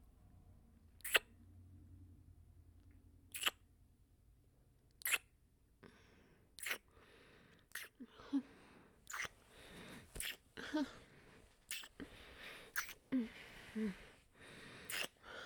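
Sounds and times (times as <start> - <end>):
wet noises: 1.0 - 1.2, 3.3 - 3.6, 5.0 - 5.3, 6.6 - 6.9, 7.7 - 8.1, 9.0 - 9.4, 10.1 - 10.7, 11.7 - 13.0, 14.9 - 15.2.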